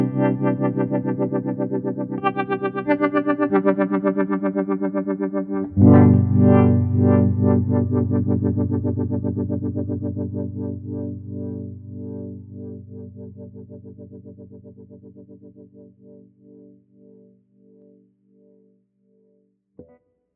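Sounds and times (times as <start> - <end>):
filtered tremolo pedal sound: 0.0 - 15.8.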